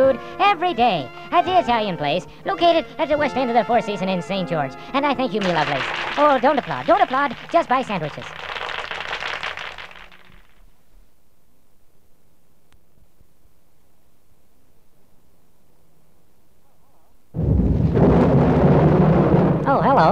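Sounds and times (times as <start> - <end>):
speech: 0.1 - 8.4
thunder rumbling: 5.4 - 9.5, 17.4 - 20.1
heavy rain in a storm: 5.4 - 10.3.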